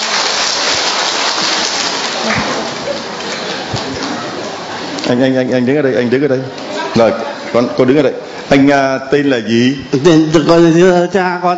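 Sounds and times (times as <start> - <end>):
audience applause: 0.0 - 5.1
speech: 2.2 - 3.4, 5.1 - 11.5.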